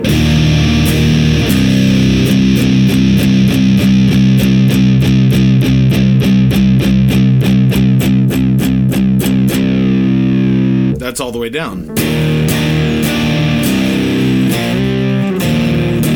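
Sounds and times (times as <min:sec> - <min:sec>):
electric guitar through fuzz pedal with drive fully up: 0:00.0 - 0:16.1
speech: 0:11.2 - 0:12.3.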